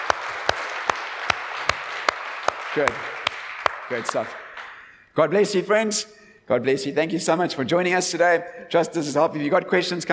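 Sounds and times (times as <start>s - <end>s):
audience applause: 0.0s - 4.9s
speech: 2.8s - 3.2s, 3.9s - 4.4s, 5.2s - 10.1s.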